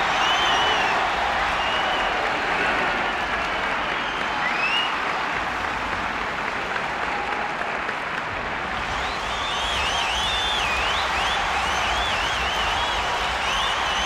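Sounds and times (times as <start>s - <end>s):
stadium crowd whistling: 0.0s - 5.2s, 8.8s - 14.0s
noisy crowd at a stadium: 0.0s - 14.0s
stadium crowd applause: 0.0s - 14.0s.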